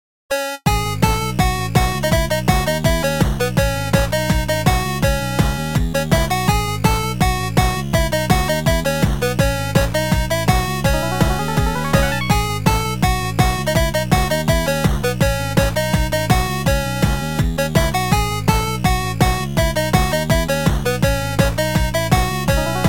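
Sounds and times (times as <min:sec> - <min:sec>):
8-bit music: 0:00.3 - 0:17.7, 0:18.3 - 0:22.8.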